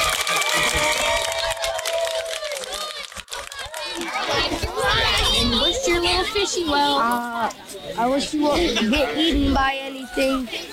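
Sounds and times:
round of applause: 0.0s - 5.3s
speech: 6.4s - 10.7s.

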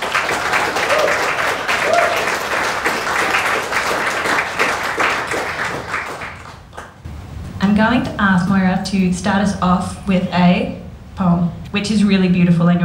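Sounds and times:
audience applause: 0.0s - 7.0s
speech: 7.8s - 12.8s.

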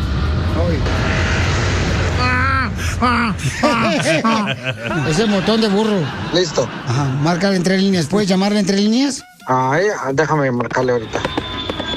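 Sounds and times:
airplane: 0.0s - 3.6s, 11.0s - 11.9s
laughter: 3.0s - 8.0s
speech: 3.0s - 11.4s.

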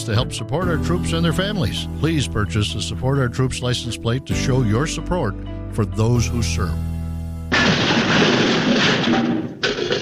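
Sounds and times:
speech: 0.0s - 7.0s, 9.1s - 9.3s
car crashing into garage door: 7.5s - 9.9s
crunching and rattling: 7.5s - 9.9s
clatter: 7.6s - 9.9s.

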